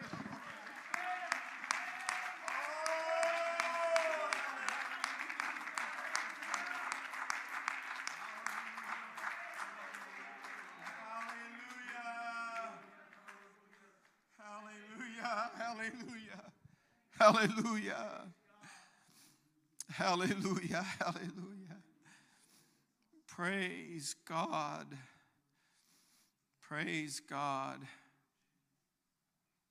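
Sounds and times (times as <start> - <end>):
audience clapping hands: 0.0 - 16.2, 17.2 - 18.1
laughter: 14.4 - 16.6, 17.2 - 18.3, 19.8 - 21.9
speech: 15.7 - 16.2, 17.2 - 18.3, 20.0 - 21.4, 23.4 - 25.1, 26.7 - 28.0.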